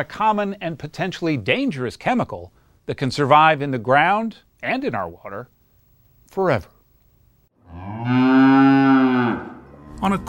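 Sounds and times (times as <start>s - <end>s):
speech: 0.0s - 5.6s, 6.3s - 6.8s, 7.7s - 10.2s
cow mooing: 7.6s - 10.2s.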